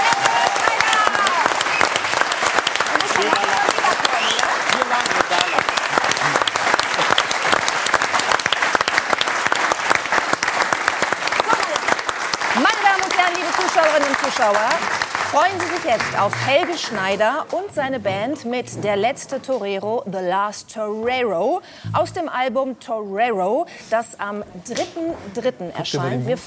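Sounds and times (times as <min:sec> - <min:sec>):
faint cheers: 0:00.0 - 0:02.0
audience applause: 0:00.0 - 0:17.7
speech: 0:15.4 - 0:26.4.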